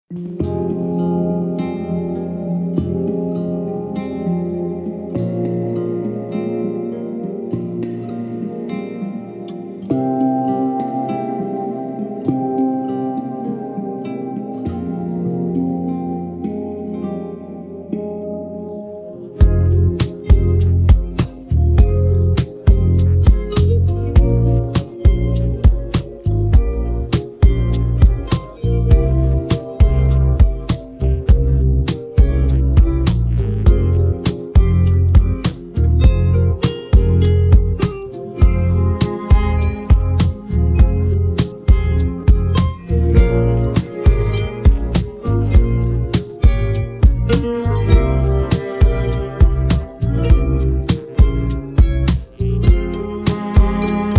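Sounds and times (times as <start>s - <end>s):
instrumental music: 0.0s - 54.1s.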